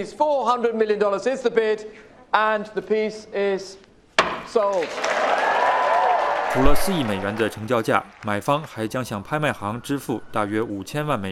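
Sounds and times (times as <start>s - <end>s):
speech: 0.0s - 3.8s, 4.4s - 5.3s, 6.5s - 11.2s
auction room applause: 4.7s - 8.9s.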